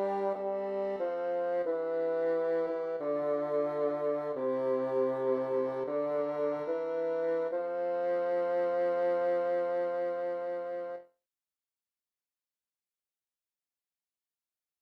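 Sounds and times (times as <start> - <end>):
MIDI music: 0.0 - 10.9.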